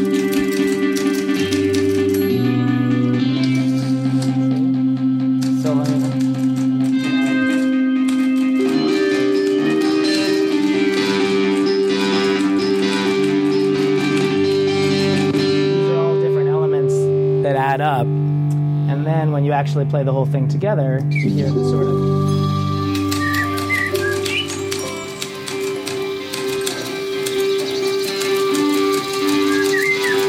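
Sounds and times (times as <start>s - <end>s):
rapid typewriter clacks: 0.0s - 2.4s, 5.3s - 15.3s, 22.8s - 30.2s
distorted rock guitar holding low sustained notes: 0.0s - 25.1s
speech: 19.7s - 22.3s.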